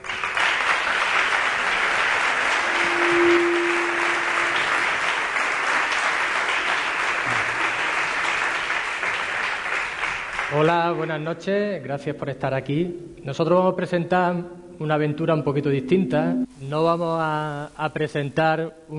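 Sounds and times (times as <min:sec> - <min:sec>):
audience applause: 0:00.0 - 0:10.8
speech: 0:10.6 - 0:18.9.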